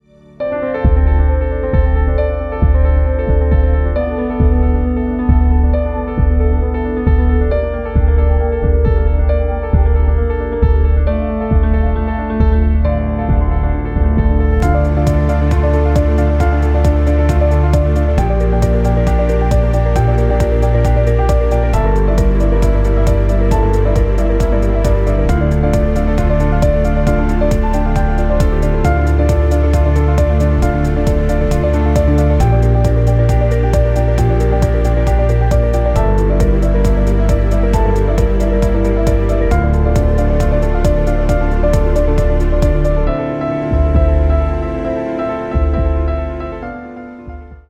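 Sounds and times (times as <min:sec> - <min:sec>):
piano: 0:00.0 - 0:47.6.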